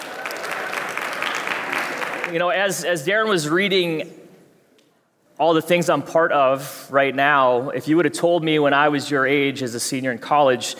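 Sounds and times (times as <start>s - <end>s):
audience cheering: 0.0s - 2.4s
applause: 0.0s - 2.5s
speech: 2.3s - 4.2s, 5.4s - 10.7s.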